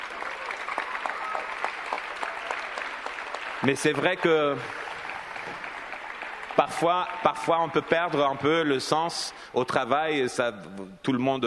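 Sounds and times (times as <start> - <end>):
audience applauding: 0.0 - 9.0
speech: 3.6 - 4.8, 6.8 - 11.4.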